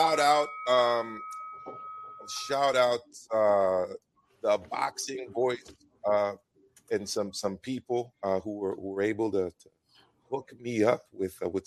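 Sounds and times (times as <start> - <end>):
bell ding struck as a cue during a boxing talk show: 0.0 - 3.0
speech: 0.4 - 11.6.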